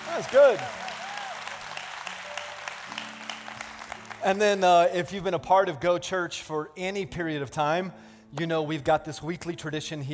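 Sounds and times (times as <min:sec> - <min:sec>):
audience clapping: 0:00.0 - 0:04.6
speech: 0:00.2 - 0:00.8, 0:04.2 - 0:10.1.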